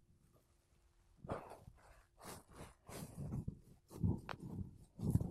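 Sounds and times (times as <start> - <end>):
makeup brushes and a sponge rubbing a microphone: 1.3 - 5.2.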